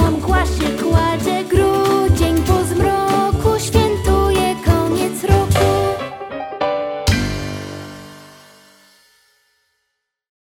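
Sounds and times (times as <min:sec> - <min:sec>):
person singing a song about a calendar: 0:00.0 - 0:06.6.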